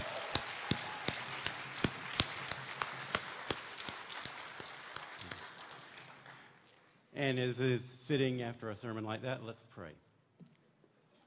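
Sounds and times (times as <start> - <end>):
audience applause: 0.0 - 6.6
speech: 7.2 - 10.1.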